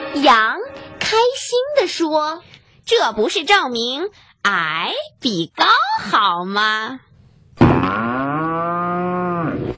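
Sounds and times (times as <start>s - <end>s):
speech: 0.1s - 8.1s
cow mooing: 7.7s - 9.7s.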